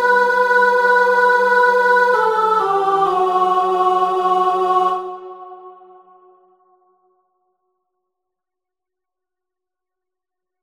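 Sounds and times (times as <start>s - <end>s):
choir singing: 0.0s - 7.0s.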